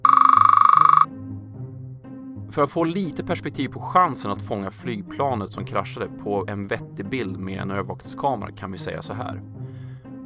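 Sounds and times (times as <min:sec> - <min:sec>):
series of electronic beeps: 0:00.0 - 0:01.1
speech: 0:02.5 - 0:09.6.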